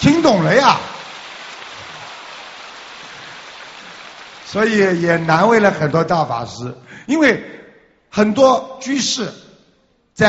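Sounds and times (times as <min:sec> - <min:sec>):
speech: 0:00.0 - 0:00.9, 0:04.5 - 0:09.4
audience applause: 0:00.0 - 0:06.0.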